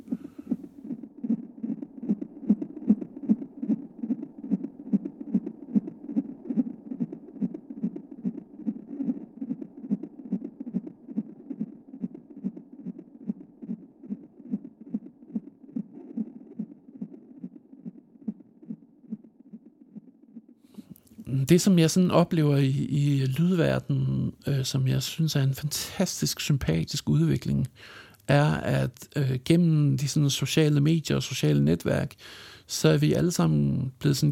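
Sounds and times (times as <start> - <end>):
recorded pulse from inside a baby's brain: 0.0 - 20.5
speech: 21.5 - 34.3.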